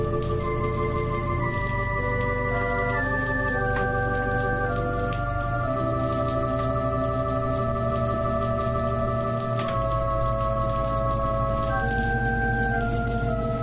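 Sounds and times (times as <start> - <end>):
organ prelude for worship: 0.0 - 13.6.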